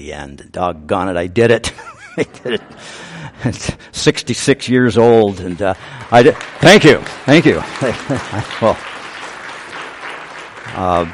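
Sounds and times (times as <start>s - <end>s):
speech: 0.0s - 8.9s, 10.8s - 11.1s
laughter: 1.6s - 3.7s, 7.4s - 9.6s
audience applause: 5.3s - 11.1s.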